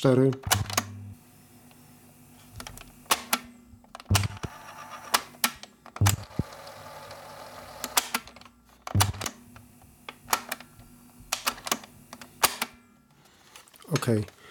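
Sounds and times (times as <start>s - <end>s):
speech: 0.0s - 0.7s, 14.1s - 14.4s
tape recorder buttons clunking and clicking: 0.4s - 1.0s, 2.6s - 7.2s, 7.8s - 9.4s, 11.3s - 12.7s
tape recorder mechanism whirring: 0.4s - 1.3s, 2.1s - 12.7s
tape recorder motor hum: 0.4s - 3.2s, 3.8s - 8.1s, 8.9s - 12.4s.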